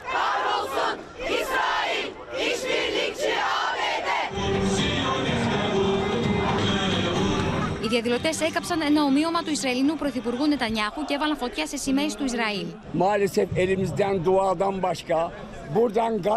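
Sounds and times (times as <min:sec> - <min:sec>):
large crowd chanting: 0:00.0 - 0:13.0
speech: 0:07.9 - 0:16.3.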